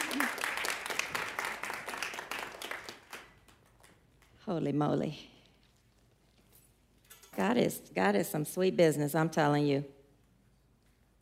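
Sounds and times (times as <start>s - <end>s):
crowd applauding: 0.0s - 4.0s
speech: 4.5s - 5.4s, 7.4s - 10.0s.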